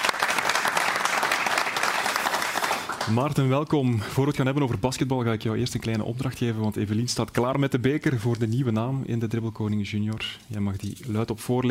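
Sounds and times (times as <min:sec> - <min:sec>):
TV studio audience applauding a new guest: 0:00.0 - 0:03.5
speech: 0:03.1 - 0:11.6.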